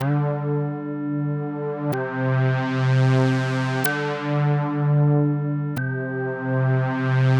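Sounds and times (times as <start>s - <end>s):
bass: 0.0s - 7.3s.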